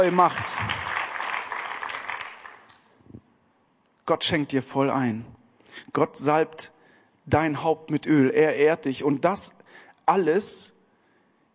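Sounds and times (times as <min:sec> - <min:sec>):
speech: 0:00.0 - 0:00.9, 0:04.1 - 0:10.8
audience applause: 0:00.0 - 0:02.8.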